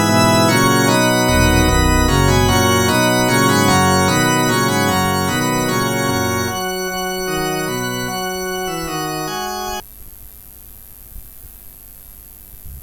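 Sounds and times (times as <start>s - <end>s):
organ interlude: 0.0s - 9.8s.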